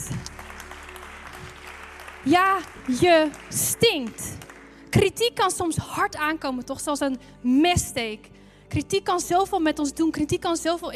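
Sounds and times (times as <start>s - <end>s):
applause: 0.0s - 5.2s
speech: 2.2s - 10.9s.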